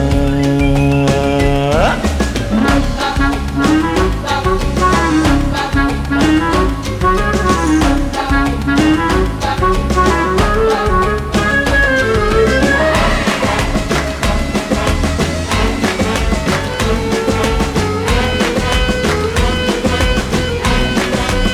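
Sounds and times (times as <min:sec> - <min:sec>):
slowed ringtone with reverb: 0:00.2 - 0:21.5.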